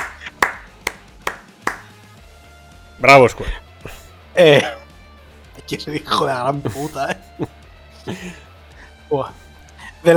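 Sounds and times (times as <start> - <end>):
hand clapping: 0.0 - 2.0
speech: 3.0 - 3.6, 4.4 - 4.8, 5.6 - 8.5, 9.1 - 9.4.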